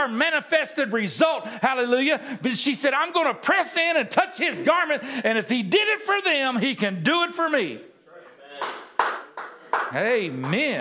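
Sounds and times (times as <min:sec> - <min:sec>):
speech: 0:00.0 - 0:07.9, 0:09.7 - 0:10.7
audience rhythmic group clapping: 0:08.6 - 0:10.7.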